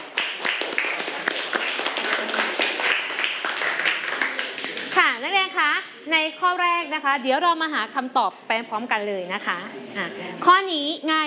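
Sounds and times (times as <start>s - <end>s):
classroom clapping for a student: 0.0s - 5.2s
speech: 6.1s - 11.2s.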